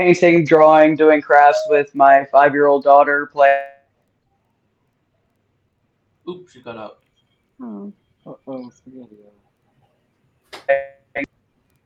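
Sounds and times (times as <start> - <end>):
speech: 0.0 - 3.7, 6.3 - 7.0, 7.6 - 9.4, 10.6 - 11.3
alarm going off: 1.3 - 2.0.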